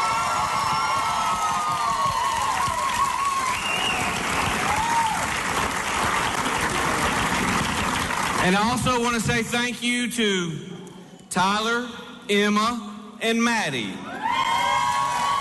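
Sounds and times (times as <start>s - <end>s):
crowd applause: 0.0s - 8.8s, 14.2s - 15.3s
speech: 8.5s - 10.7s, 11.3s - 14.0s.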